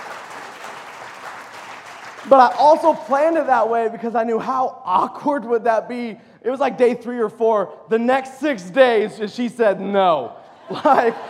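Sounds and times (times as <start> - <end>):
crowd clapping: 0.0 - 3.8
speech: 2.2 - 11.2
laughter: 10.4 - 11.2.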